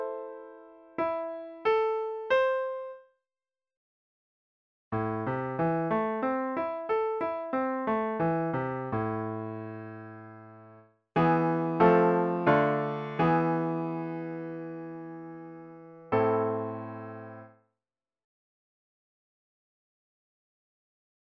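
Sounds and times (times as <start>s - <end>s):
A harmonic minor scale exercise on piano: 0.0s - 3.0s, 5.0s - 17.6s.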